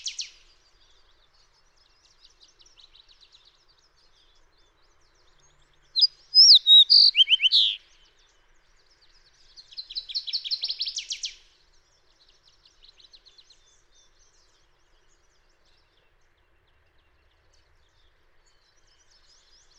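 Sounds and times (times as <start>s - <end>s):
fox sparrow singing: 5.0s - 8.0s, 9.8s - 11.4s.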